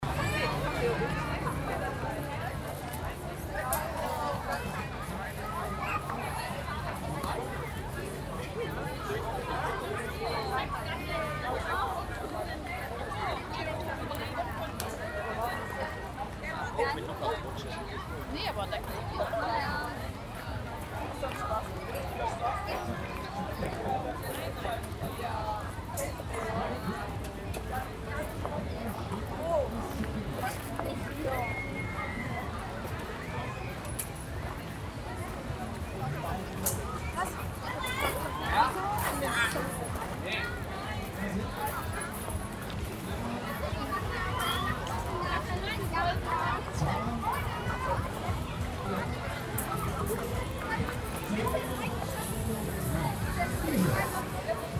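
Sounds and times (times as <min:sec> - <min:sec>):
murmur of crowd voices: 0:00.0 - 0:54.7.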